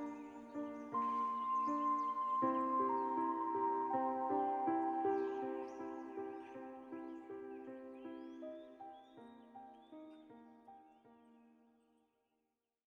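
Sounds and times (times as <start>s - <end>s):
melody: 0.0s - 7.5s
nature sounds: 0.0s - 11.6s.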